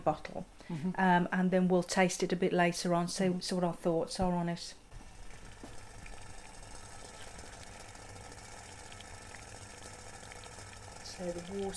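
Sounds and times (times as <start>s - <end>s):
speech: 0.0s - 4.8s, 11.2s - 11.7s
water coming to the boil: 4.9s - 11.7s.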